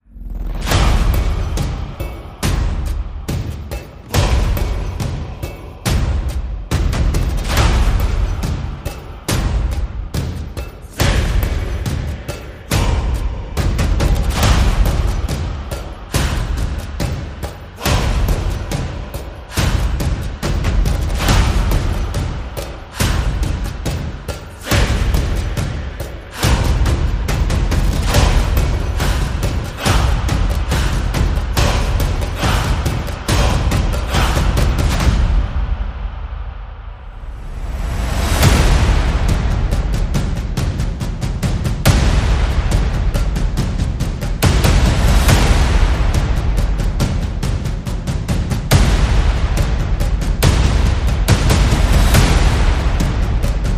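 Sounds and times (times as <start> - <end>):
tribal music: 0.0 - 53.7.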